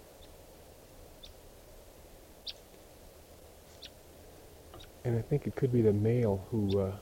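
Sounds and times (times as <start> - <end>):
wild bird chirping: 0.0 - 0.5, 1.1 - 1.5, 2.4 - 2.9, 3.6 - 5.1, 5.8 - 6.9
low hiss: 0.0 - 6.9
speech: 4.8 - 6.9.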